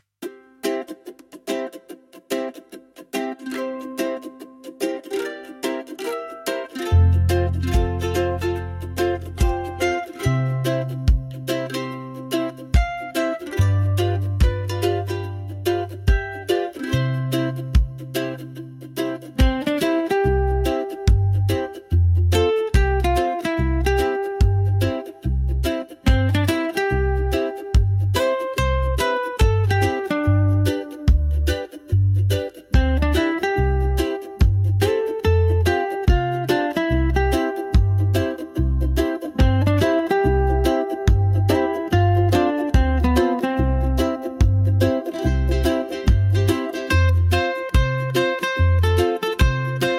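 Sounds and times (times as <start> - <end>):
Hawaiian music: 0.2 - 49.9.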